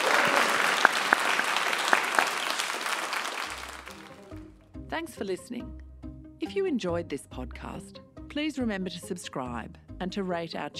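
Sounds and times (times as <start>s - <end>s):
audience applause: 0.0s - 4.4s
speech: 5.0s - 10.7s.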